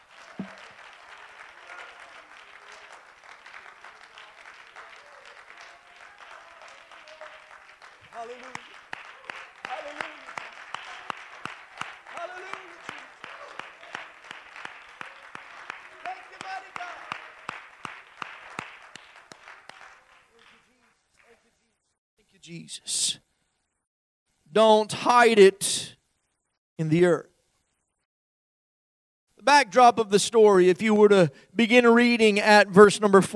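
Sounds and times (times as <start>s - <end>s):
audience clapping hands: 0.0s - 21.7s
speech: 8.2s - 8.7s, 22.5s - 23.3s, 24.6s - 25.9s, 26.8s - 27.3s, 29.7s - 33.3s.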